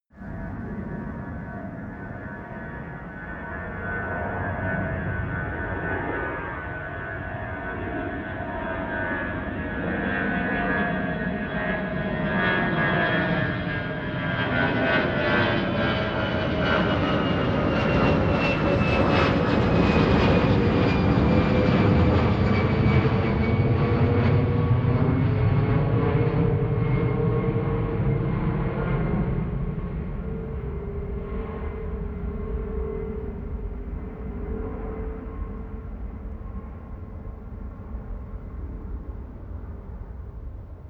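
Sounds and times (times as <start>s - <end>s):
plane flyby and landing: 0.2s - 40.8s.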